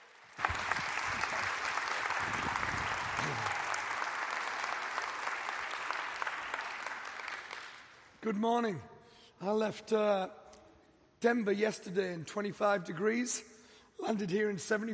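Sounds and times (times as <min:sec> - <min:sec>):
audience applause: 0:00.0 - 0:08.0
speech: 0:08.2 - 0:10.4, 0:11.2 - 0:14.9.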